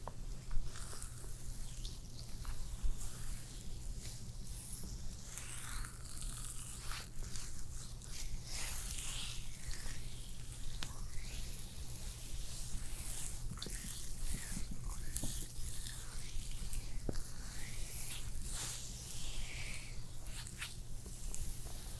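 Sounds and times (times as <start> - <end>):
spa facial squishing and rubbing on skin: 0.6 - 21.9.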